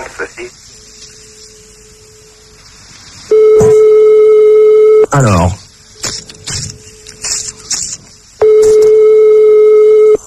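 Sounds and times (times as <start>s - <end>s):
telephone ringing tone: 3.3s - 5.1s, 8.4s - 10.2s
speech: 5.1s - 5.6s.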